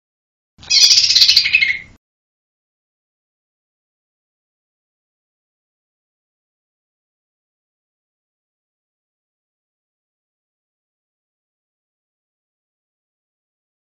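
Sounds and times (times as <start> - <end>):
bird singing lively high chirped phrases: 0.6 - 2.0.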